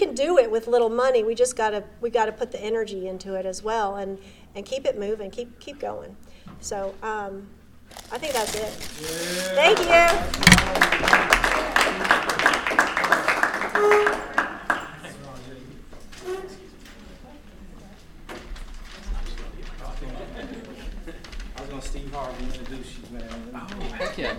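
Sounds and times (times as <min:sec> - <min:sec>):
speech: 0:00.2 - 0:11.4, 0:13.8 - 0:14.4
audience applause: 0:09.5 - 0:14.8.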